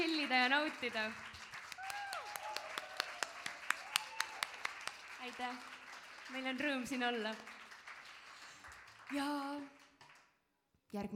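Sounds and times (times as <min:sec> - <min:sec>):
speech: 0:00.0 - 0:01.3, 0:05.2 - 0:07.6, 0:09.1 - 0:09.8, 0:10.9 - 0:11.1
audience applause at a concert in Kõima manor: 0:00.0 - 0:10.5.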